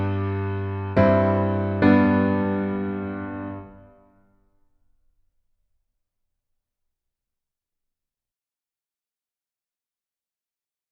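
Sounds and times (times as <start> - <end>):
piano piece: 0.0 - 4.1.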